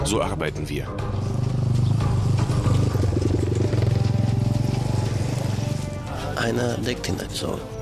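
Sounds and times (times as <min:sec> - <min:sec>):
speech: 0:00.1 - 0:01.3, 0:06.4 - 0:07.8
motorcycle engine running: 0:01.0 - 0:06.3.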